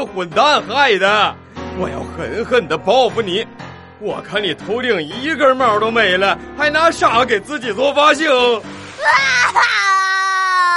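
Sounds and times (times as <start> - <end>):
speech: 0.0 - 9.8
loud crying: 9.0 - 10.7.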